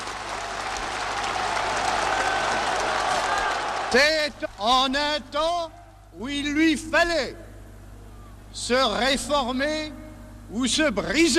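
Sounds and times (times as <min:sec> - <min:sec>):
crowd cheering and applauding: 0:00.0 - 0:04.8
speech: 0:03.9 - 0:07.4, 0:08.6 - 0:11.3.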